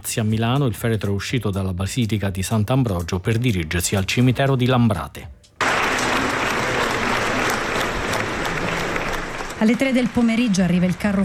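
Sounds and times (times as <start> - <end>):
speech: 0.1 - 5.4, 9.6 - 11.2
crowd applause at a funeral for Don Antonio Mazzi: 5.6 - 11.2.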